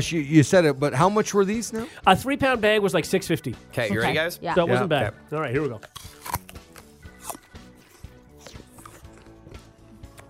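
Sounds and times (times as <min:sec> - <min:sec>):
speech: 0:00.0 - 0:06.4
biting and chewing a crisp crab apple: 0:05.8 - 0:10.2.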